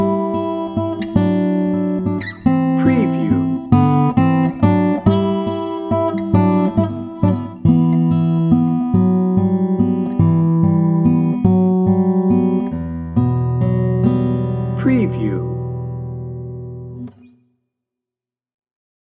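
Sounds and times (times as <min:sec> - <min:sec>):
warm dramatic guitar: 0:00.0 - 0:17.4.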